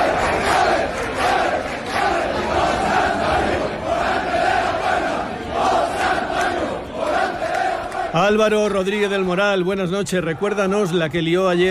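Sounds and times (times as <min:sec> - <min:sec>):
shouts and chants: 0:00.0 - 0:08.4
crowd celebrating in Seville streets: 0:00.0 - 0:11.6
speech: 0:08.2 - 0:11.6.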